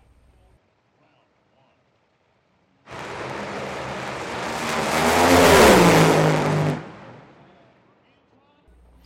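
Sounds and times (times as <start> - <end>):
top fuel dragster run: 2.9 - 7.6.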